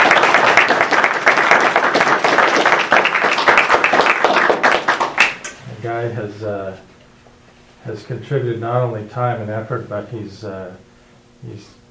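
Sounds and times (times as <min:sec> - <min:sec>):
round of applause: 0:00.0 - 0:05.5
speech: 0:07.8 - 0:11.8.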